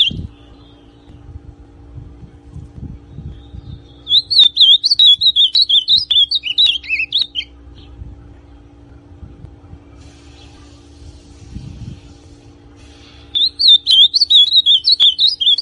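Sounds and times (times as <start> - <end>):
ultramarine grosbeak song: 0.0 - 1.3, 3.1 - 8.0, 13.0 - 15.6.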